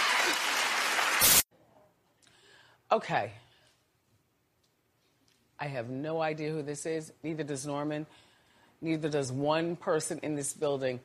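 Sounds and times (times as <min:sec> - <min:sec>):
audience clapping: 0:00.0 - 0:01.4
speech: 0:02.9 - 0:03.4, 0:05.6 - 0:08.2, 0:08.8 - 0:11.0.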